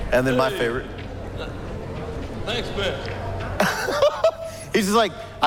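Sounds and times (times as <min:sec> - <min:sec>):
speech: 0:00.1 - 0:01.1, 0:02.5 - 0:03.1, 0:04.8 - 0:05.4
laughter: 0:03.5 - 0:05.4
heavy labored breathing: 0:04.5 - 0:05.4.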